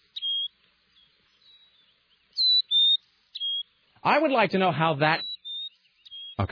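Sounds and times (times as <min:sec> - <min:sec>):
Carolina chickadee whistled calls: 0:00.0 - 0:03.8, 0:05.1 - 0:06.5
speech: 0:04.0 - 0:05.3.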